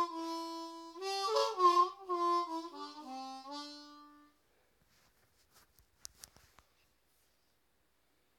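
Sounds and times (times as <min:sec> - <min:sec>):
harmonica playing in maqam Ushaq: 0:00.0 - 0:04.4.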